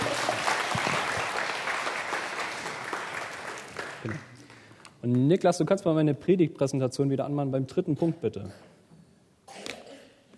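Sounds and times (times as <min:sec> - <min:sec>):
audience applause: 0:00.0 - 0:04.7
speech: 0:04.0 - 0:04.3, 0:05.0 - 0:08.7.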